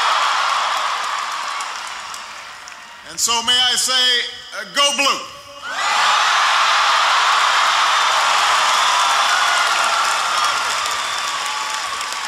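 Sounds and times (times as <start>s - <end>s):
large crowd applauding: 0.0s - 3.0s, 6.4s - 12.2s
speech: 3.1s - 5.9s.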